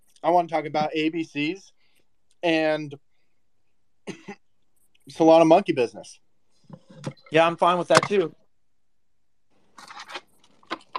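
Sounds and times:
speech: 0:00.2 - 0:01.8, 0:02.4 - 0:03.0, 0:05.1 - 0:08.4
person chewing into an open microphone: 0:09.8 - 0:10.9.

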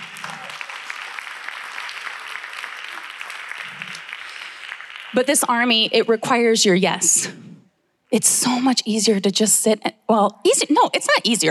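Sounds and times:
audience clapping: 0:00.0 - 0:06.0
speech: 0:05.1 - 0:07.5, 0:08.1 - 0:11.5.

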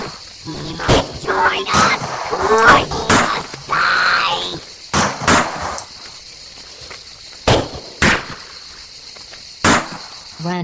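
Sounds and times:
low hiss: 0:00.0 - 0:10.6
speech: 0:00.4 - 0:03.0
gunshots in a radio drama: 0:00.8 - 0:04.4, 0:05.0 - 0:05.9, 0:07.5 - 0:08.6, 0:09.6 - 0:10.2.

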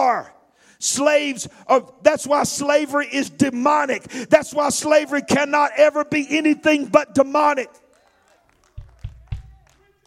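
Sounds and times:
speech: 0:00.1 - 0:07.8
few people clapping: 0:07.8 - 0:10.0.

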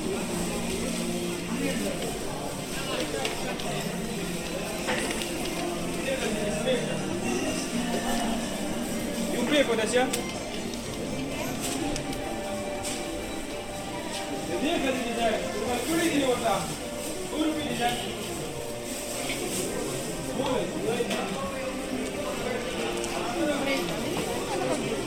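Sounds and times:
babble of traders and customers at Coventry Market: 0:00.0 - 0:25.0.

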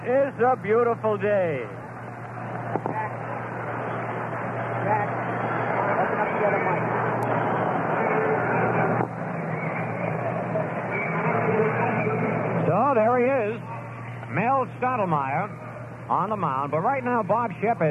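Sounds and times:
low hum: 0:00.0 - 0:17.8
speech: 0:00.1 - 0:01.8, 0:14.3 - 0:17.8
crowd roaring at a baseball stadium: 0:03.7 - 0:12.6.

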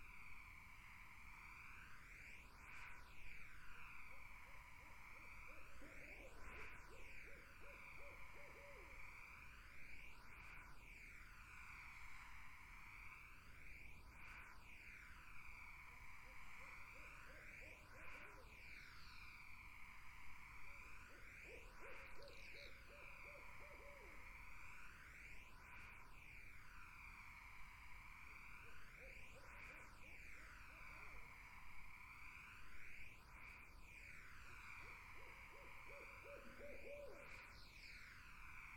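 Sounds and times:
droning insect chorus: 0:00.0 - 0:38.7
barred owl hoots: 0:05.5 - 0:09.2, 0:16.2 - 0:18.4, 0:21.1 - 0:24.7, 0:34.6 - 0:37.7.

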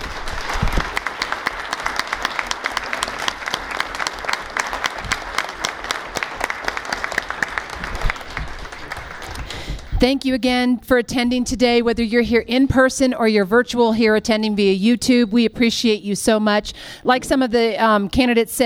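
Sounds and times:
audience applause: 0:00.0 - 0:10.0
speech: 0:10.0 - 0:18.6.

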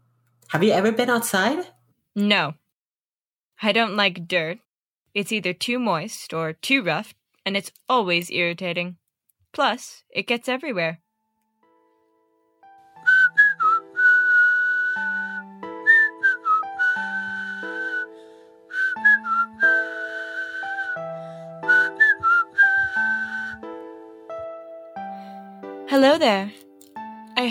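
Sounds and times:
speech: 0:00.5 - 0:02.6, 0:03.6 - 0:04.6, 0:05.2 - 0:11.0, 0:26.0 - 0:26.6
nightingale song as whistled melody: 0:13.0 - 0:23.9.

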